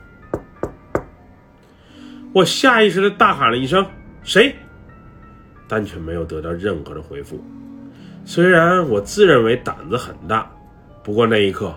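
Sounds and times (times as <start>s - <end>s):
light knock on a shower stall door: 0.4s - 1.2s
speech: 2.3s - 4.6s, 5.7s - 7.6s, 8.2s - 11.7s.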